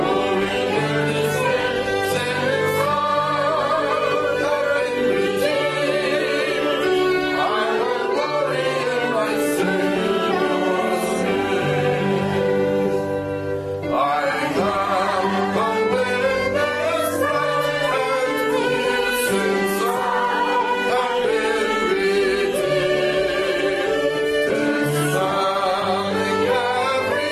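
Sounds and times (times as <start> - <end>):
piano playing a worship prelude: 0.0 - 27.2
violin playing a worship prelude: 0.0 - 27.2.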